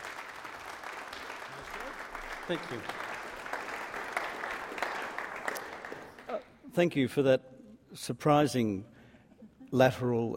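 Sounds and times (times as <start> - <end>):
audience applauding a speaker to the podium: 0.0 - 6.6
speech: 2.5 - 3.0, 6.8 - 8.9, 9.7 - 10.3.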